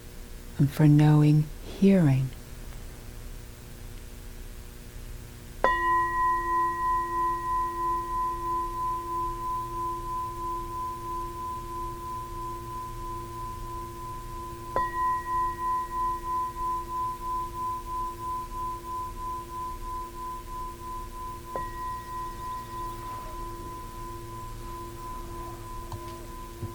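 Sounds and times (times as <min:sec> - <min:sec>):
speech: 0:00.6 - 0:02.4
meditation bell ringing: 0:05.6 - 0:26.7.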